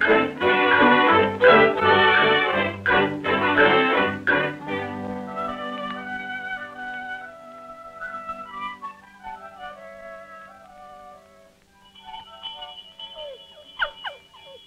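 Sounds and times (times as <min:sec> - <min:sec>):
farm dinner bell ringing: 0:00.0 - 0:05.9, 0:11.8 - 0:14.6.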